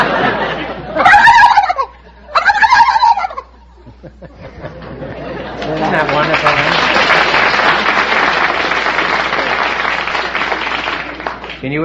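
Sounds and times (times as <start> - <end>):
laughter: 0.0 - 2.6, 3.3 - 11.3
person imitating a turkey gobble: 1.0 - 3.5.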